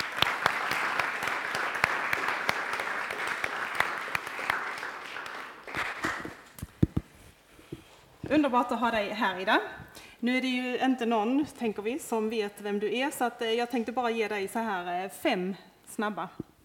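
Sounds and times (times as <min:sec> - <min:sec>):
audience applause: 0:00.0 - 0:06.5
speech: 0:08.3 - 0:16.4.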